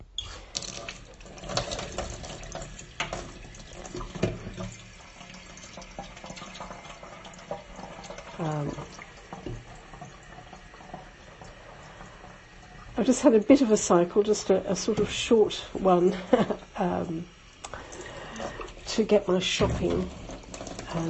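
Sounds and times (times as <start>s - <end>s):
kettle being filled from the tap: 0.0s - 21.0s
speech: 8.4s - 9.0s, 13.0s - 17.4s, 19.0s - 20.2s.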